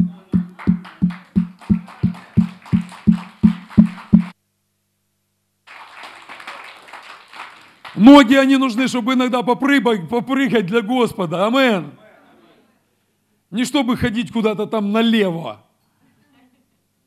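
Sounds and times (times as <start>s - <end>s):
group clapping in unison: 0.0s - 4.4s, 5.6s - 8.1s
speech: 8.0s - 12.0s, 13.5s - 15.6s.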